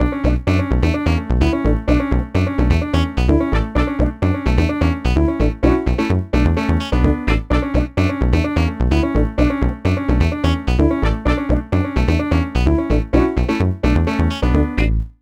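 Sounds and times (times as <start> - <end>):
punk funk music: 0.0 - 15.2.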